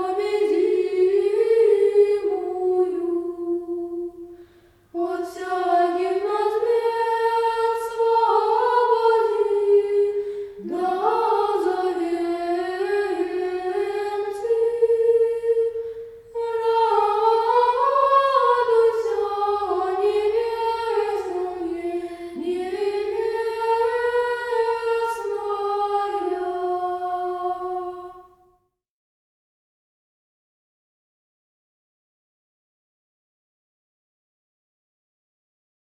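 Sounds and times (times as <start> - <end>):
Orthodox liturgical kontakion chant in tone 8: 0.0 - 4.4, 5.0 - 28.4.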